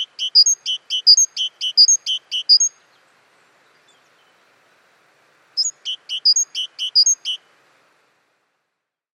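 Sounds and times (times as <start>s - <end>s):
great tit sharp high calls: 0.0s - 4.5s, 5.5s - 7.5s.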